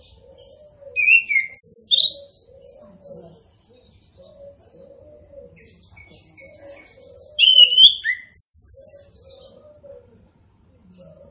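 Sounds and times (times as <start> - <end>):
orange-headed thrush singing warbled whistles: 7.4 - 8.8.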